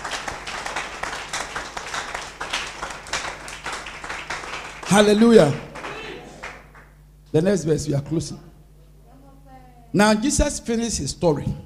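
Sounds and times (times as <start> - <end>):
audience clapping: 0.0 - 7.0
speech: 4.9 - 5.7, 7.3 - 8.5, 9.9 - 11.6.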